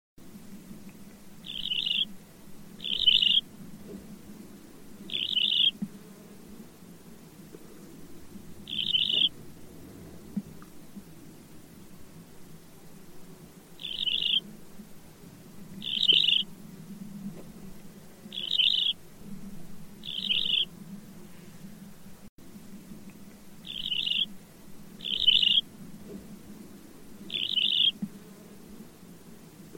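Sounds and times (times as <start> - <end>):
low droning hum: 0.2 - 29.7
bird buzzy calls: 1.4 - 2.2, 2.8 - 3.5, 5.0 - 5.8, 8.6 - 9.4, 13.8 - 14.5, 15.8 - 16.5, 18.3 - 19.0, 20.0 - 21.4, 23.6 - 24.4, 25.0 - 25.7, 27.3 - 28.1.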